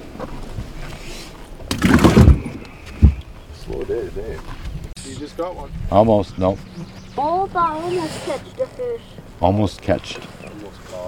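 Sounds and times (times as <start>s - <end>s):
speech: 0.2s - 0.5s, 3.9s - 11.0s
low rumble of the live well on a fishing boat opening: 2.2s - 7.6s.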